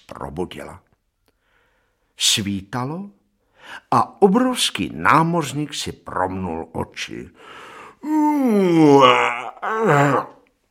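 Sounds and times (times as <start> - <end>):
speech: 0.1 - 0.9, 2.2 - 10.4
yawn: 8.0 - 10.5.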